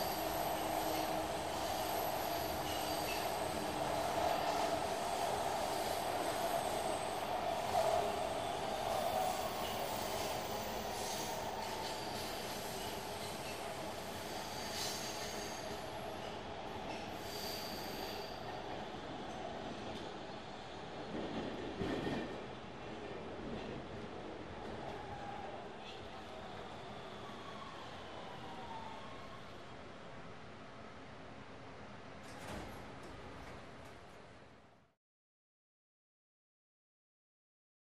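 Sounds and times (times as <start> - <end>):
subway train accelerating: 0.0 - 34.8.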